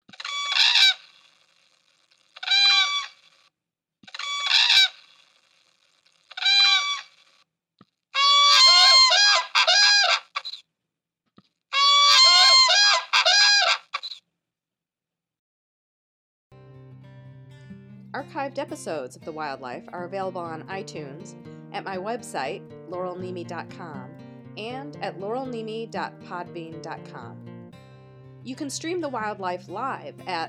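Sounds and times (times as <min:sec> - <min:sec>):
whooping crane bugling calls: 0:00.3 - 0:01.0, 0:02.4 - 0:03.2, 0:04.2 - 0:05.0, 0:06.4 - 0:07.1, 0:08.2 - 0:10.3, 0:11.8 - 0:13.9
speech: 0:18.6 - 0:27.4, 0:28.4 - 0:30.4.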